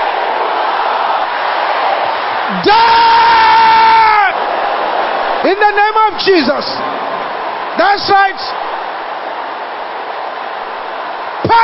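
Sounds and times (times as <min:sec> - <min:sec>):
large crowd shouting: 0:00.0 - 0:11.6
speech: 0:02.5 - 0:03.1, 0:06.1 - 0:06.9, 0:07.8 - 0:08.7
person yelling: 0:02.5 - 0:04.3.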